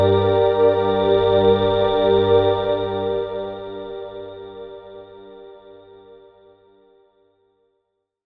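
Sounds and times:
wide galaxy synth pad: 0:00.0 - 0:06.0.

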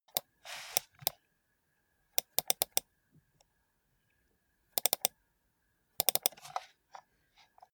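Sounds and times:
computer mouse in use: 0:00.1 - 0:01.2, 0:02.2 - 0:02.8, 0:04.8 - 0:05.1, 0:06.0 - 0:06.4.

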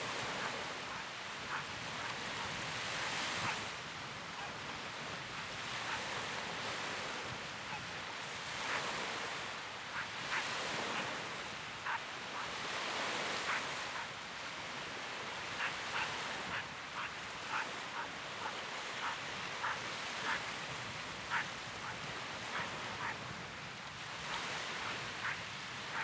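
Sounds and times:
soft beach waves: 0:00.0 - 0:26.0
wind: 0:00.0 - 0:26.0
dog: 0:00.1 - 0:03.6, 0:05.8 - 0:06.1, 0:11.8 - 0:12.5, 0:13.1 - 0:14.1, 0:15.5 - 0:20.4, 0:21.3 - 0:23.2, 0:24.2 - 0:26.0.

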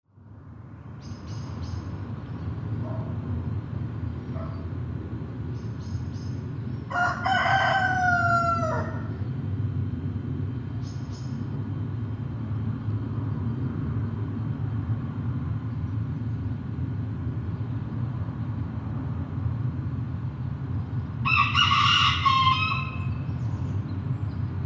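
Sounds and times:
road traffic rumble: 0:00.1 - 0:24.6
rooster crowing: 0:06.9 - 0:09.2, 0:21.2 - 0:23.2.

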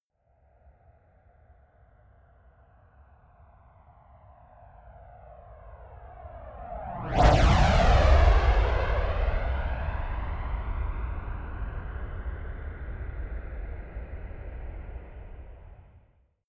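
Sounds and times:
Flanker-C military jet turbine flyby: 0:06.6 - 0:15.4.

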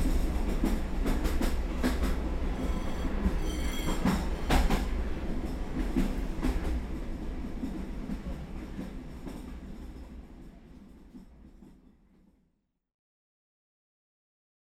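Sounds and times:
train decelerating: 0:00.0 - 0:10.0.

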